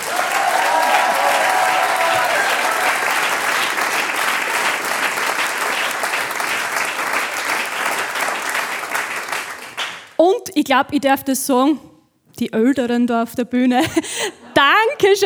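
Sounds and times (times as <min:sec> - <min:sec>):
audience applause: 0:00.0 - 0:10.2
speech: 0:10.6 - 0:15.2.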